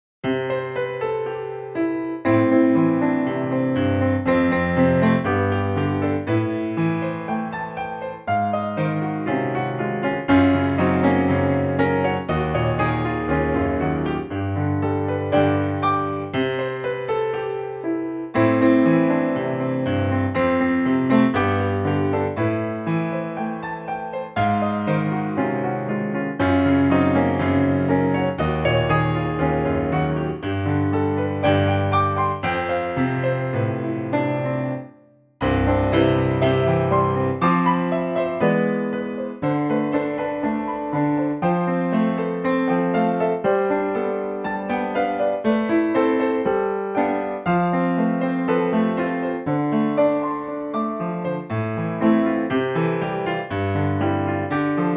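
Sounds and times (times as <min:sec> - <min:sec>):
piano: 0:00.0 - 0:54.9.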